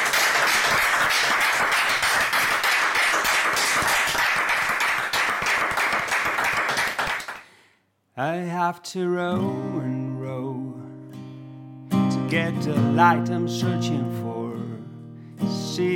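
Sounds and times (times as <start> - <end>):
audience applause: 0.0 - 7.4
speech: 8.2 - 10.5, 12.3 - 14.3, 15.5 - 15.9.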